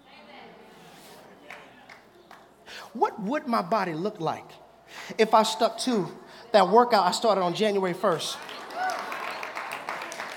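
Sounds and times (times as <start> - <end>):
speech: 2.9 - 8.5
audience clapping: 8.0 - 10.3.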